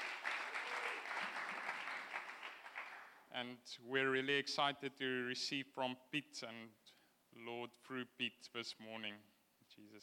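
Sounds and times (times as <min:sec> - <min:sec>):
audience clapping: 0:00.0 - 0:03.2
speech: 0:03.4 - 0:06.8, 0:07.4 - 0:10.0.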